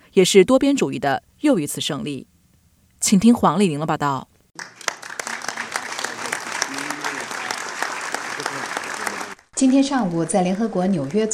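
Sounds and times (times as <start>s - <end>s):
speech: 0.2s - 2.3s, 3.0s - 4.7s, 9.6s - 11.3s
warm applause from delegates: 4.6s - 11.3s.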